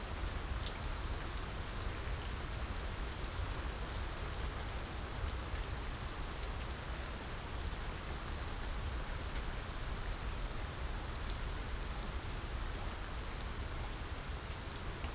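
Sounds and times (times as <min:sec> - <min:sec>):
strong monotone rain: 0:00.0 - 0:15.1.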